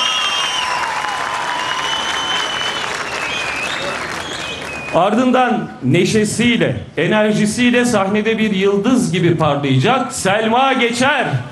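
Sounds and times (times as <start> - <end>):
audience applause: 0.0 - 5.0
speech: 4.9 - 11.5.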